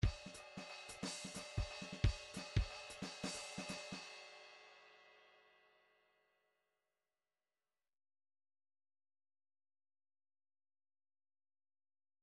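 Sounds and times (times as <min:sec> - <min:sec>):
rhythmic groove in three-four time: 0:00.0 - 0:04.0.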